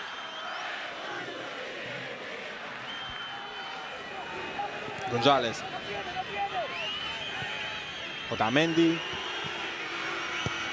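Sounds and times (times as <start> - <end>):
whistles: 0.0 - 0.6, 2.8 - 3.5, 6.6 - 9.6, 10.2 - 10.7
large stadium crowd roaring and cheering: 0.0 - 10.7
speech: 5.1 - 5.7, 8.3 - 9.2.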